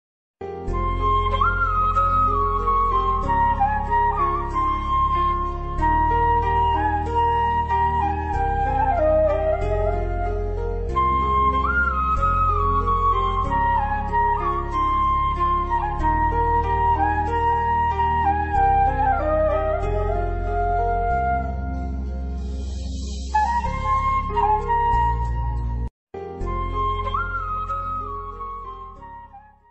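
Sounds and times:
bansuri flute music ringtone: 0:00.6 - 0:29.7.

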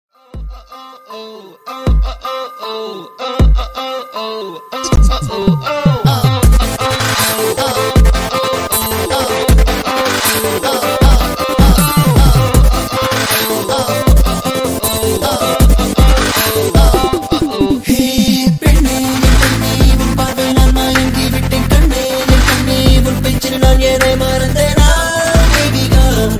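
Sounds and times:
background music: 0:00.2 - 0:26.3
ringtone: 0:00.7 - 0:09.5, 0:10.6 - 0:18.6.

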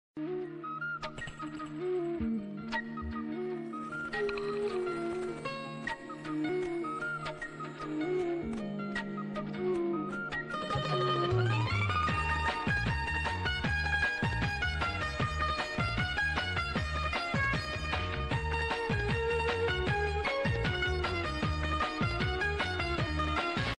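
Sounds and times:
South Indian background music ringtone: 0:00.2 - 0:23.7.

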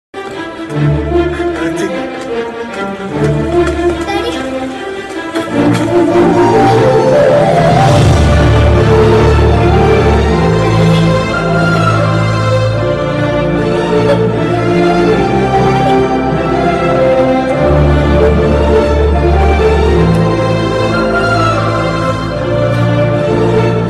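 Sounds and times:
climax background music ringtone: 0:00.2 - 0:23.8.

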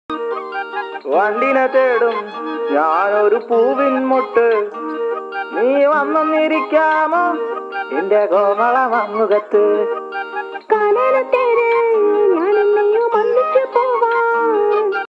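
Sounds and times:
Malayalam music song: 0:00.1 - 0:15.0.

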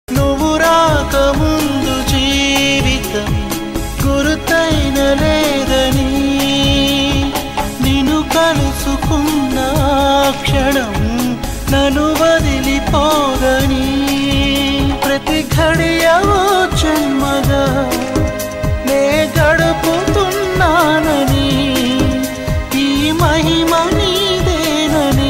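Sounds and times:
Telugu love songs: 0:00.1 - 0:25.2.

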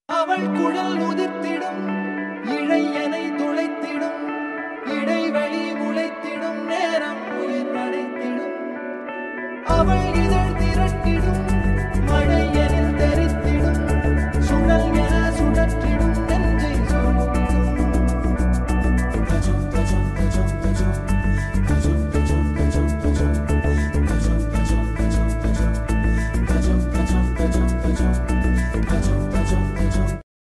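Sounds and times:
Tamil love ringtone background music: 0:00.1 - 0:30.2.

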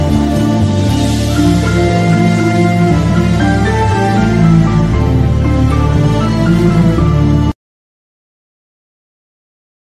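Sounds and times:
Tamil love background music ringtone: 0:00.0 - 0:07.5.

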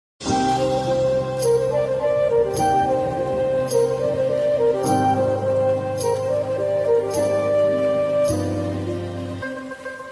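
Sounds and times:
rain theme ringtone background music: 0:00.2 - 0:10.1.

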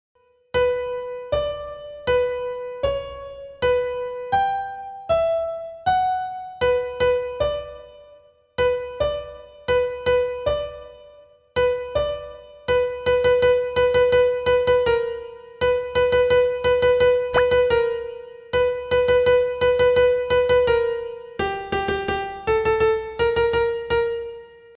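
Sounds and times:
background piano music: 0:00.2 - 0:24.7.

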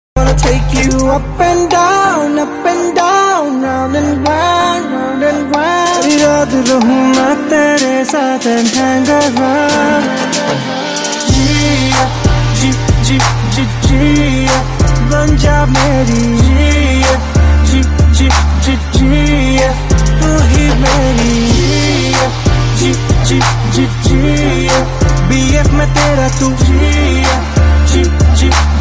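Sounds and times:
Telugu background music beats: 0:00.2 - 0:28.7.

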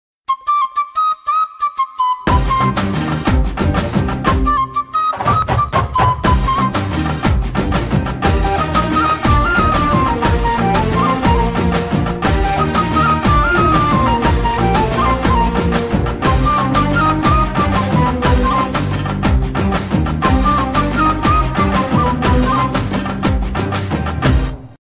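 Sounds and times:
intro background music: 0:00.3 - 0:24.8.

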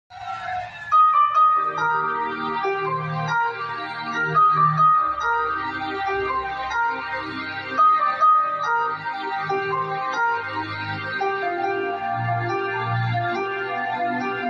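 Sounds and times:
movie love background music ringtone: 0:00.5 - 0:14.4.

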